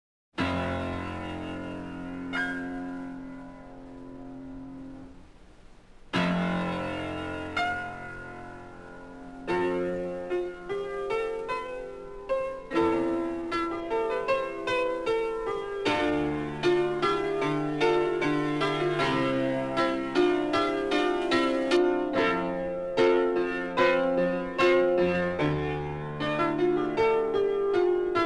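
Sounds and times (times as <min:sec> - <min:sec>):
piano: 0:00.4 - 0:28.2.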